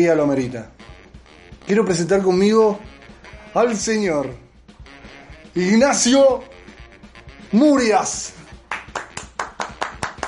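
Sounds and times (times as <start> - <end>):
speech: 0.0 - 0.8, 1.7 - 2.9, 3.6 - 4.4, 5.6 - 6.5, 7.5 - 8.4
two people clapping: 8.5 - 10.2.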